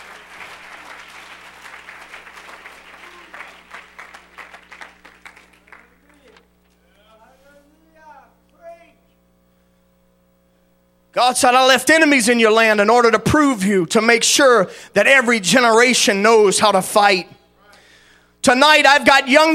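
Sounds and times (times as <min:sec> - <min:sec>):
audience clapping hands: 0:00.0 - 0:06.5
speech: 0:11.2 - 0:17.4, 0:18.4 - 0:19.5.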